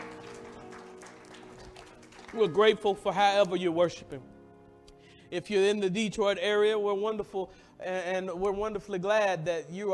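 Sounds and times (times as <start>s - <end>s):
audience hand clap of praise: 0.0s - 3.6s
speech: 2.3s - 4.3s, 5.3s - 9.9s.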